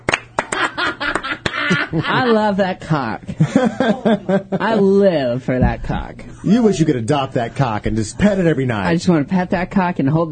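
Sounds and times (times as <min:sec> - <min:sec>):
hand claps: 0:00.0 - 0:01.8
laughter: 0:00.4 - 0:02.7, 0:03.3 - 0:05.1
speech: 0:01.7 - 0:10.2.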